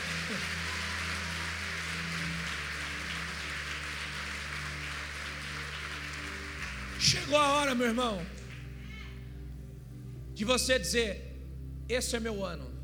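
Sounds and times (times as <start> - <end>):
audience applause: 0.0 - 7.4
speech: 7.0 - 8.4, 10.4 - 11.2, 11.9 - 12.7.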